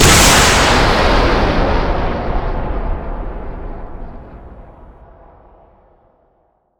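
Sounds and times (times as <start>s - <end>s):
Grad rocket launcher firing: 0.0s - 5.0s.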